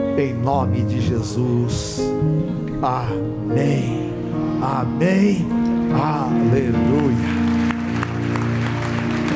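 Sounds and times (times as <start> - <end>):
speech: 0.2 - 7.4
audience clapping: 6.5 - 9.3.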